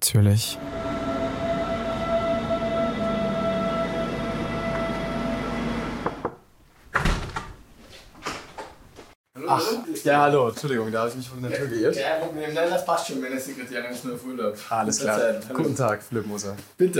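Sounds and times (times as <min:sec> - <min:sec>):
speech: 0:00.0 - 0:00.8, 0:09.5 - 0:16.9
S-Bahn commuter train rumbling and humming in motion: 0:00.6 - 0:06.2.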